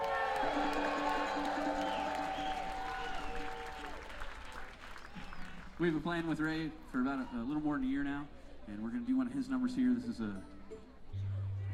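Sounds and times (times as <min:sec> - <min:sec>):
audience applause: 0:00.0 - 0:06.0
speech: 0:05.8 - 0:10.6.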